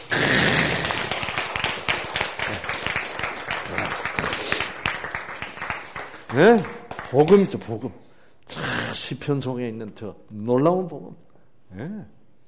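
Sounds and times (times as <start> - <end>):
audience applause: 0.0 - 7.8
speech: 6.4 - 12.2.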